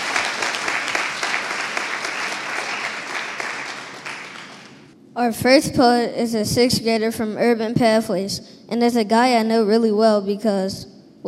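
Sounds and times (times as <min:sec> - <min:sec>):
audience applause: 0:00.0 - 0:04.9
speech: 0:05.2 - 0:11.2.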